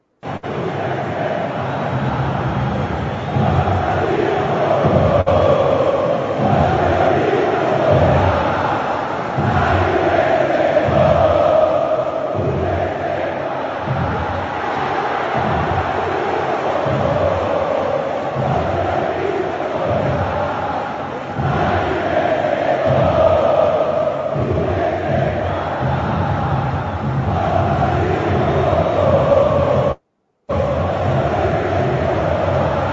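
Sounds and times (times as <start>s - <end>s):
large crowd of football supporters chanting a team song in unison: 0.2s - 32.9s.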